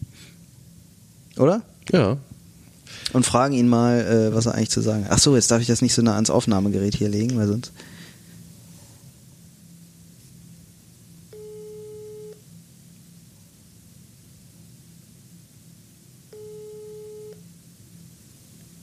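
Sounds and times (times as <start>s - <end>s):
low hum and hiss: 0.0s - 18.8s
speech: 1.4s - 2.3s, 2.9s - 8.0s
telephone ringback tone: 11.3s - 12.4s, 16.3s - 17.4s.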